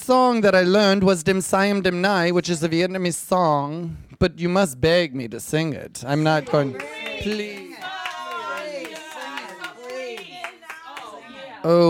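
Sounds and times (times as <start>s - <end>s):
speech: 0.1s - 7.7s, 11.6s - 11.8s
audience applause: 6.3s - 11.3s.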